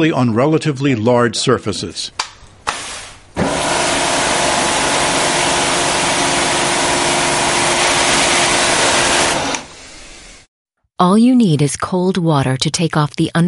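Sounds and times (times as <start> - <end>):
speech: 0.0 - 2.2, 11.0 - 13.4
pressure washer running: 2.7 - 10.5.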